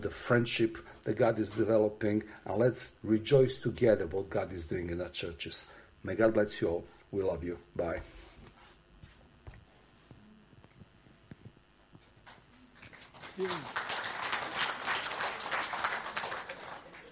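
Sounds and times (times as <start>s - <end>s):
speech: 0.0s - 8.2s, 13.4s - 13.9s
audience clapping: 12.2s - 17.1s.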